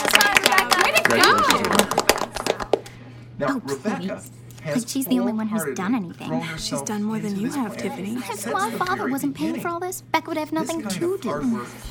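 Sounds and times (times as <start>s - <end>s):
round of applause: 0.0s - 2.8s
speech: 3.4s - 11.8s.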